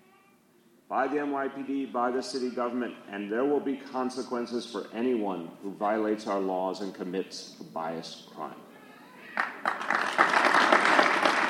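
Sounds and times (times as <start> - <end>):
speech: 0.9 - 8.7
congregants applauding at a mosque: 9.4 - 11.4.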